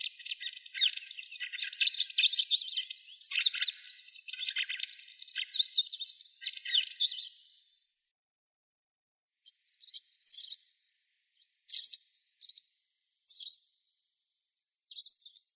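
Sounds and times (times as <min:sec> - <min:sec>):
white wagtail Motacilla alba calling: 0:00.0 - 0:05.5.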